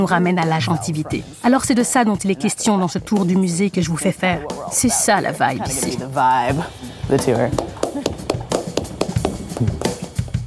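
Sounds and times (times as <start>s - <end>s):
speech: 0.0s - 7.8s, 9.6s - 9.8s
one person clapping hands: 7.2s - 10.1s.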